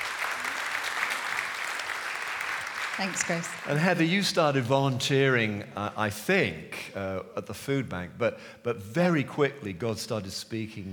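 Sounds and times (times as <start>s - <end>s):
audience applause: 0.0s - 4.4s
speech: 3.0s - 10.9s.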